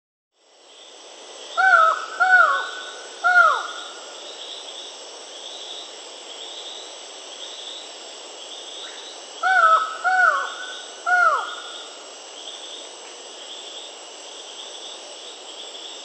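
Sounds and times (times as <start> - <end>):
Buckley's forest falcon calling in South America: 1.6 - 4.0, 8.8 - 12.0.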